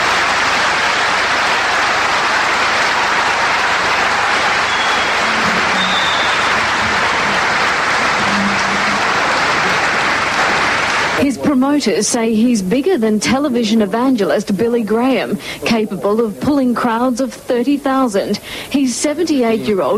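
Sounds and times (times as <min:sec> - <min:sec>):
audience applause: 0:00.0 - 0:11.2
speech: 0:11.6 - 0:19.9.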